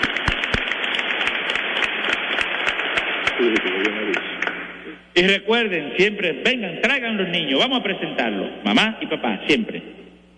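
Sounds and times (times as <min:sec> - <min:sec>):
crowd clapping: 0:00.0 - 0:04.8
speech: 0:03.4 - 0:04.2, 0:05.2 - 0:10.0.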